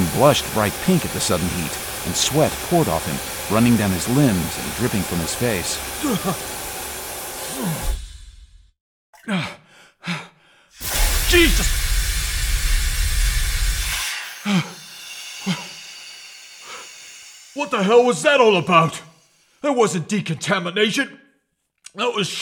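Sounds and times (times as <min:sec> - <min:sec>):
hissing blast of hot steam: 0:00.0 - 0:08.4, 0:10.8 - 0:19.6
speech: 0:00.2 - 0:06.6, 0:09.3 - 0:09.6, 0:17.6 - 0:21.2, 0:22.0 - 0:22.4.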